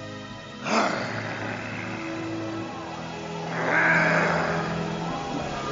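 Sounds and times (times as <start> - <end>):
lion roaring: 0.6 - 2.8, 3.4 - 5.2.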